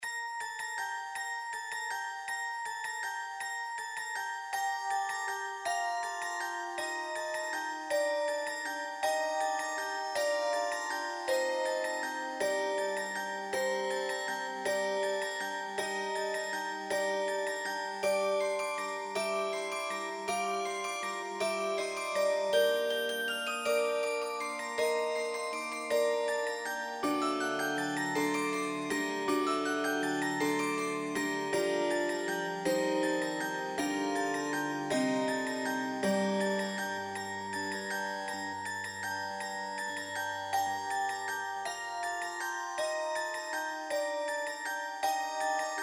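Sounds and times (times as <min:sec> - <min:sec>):
instrumental Christmas carol: 0:00.0 - 0:45.8.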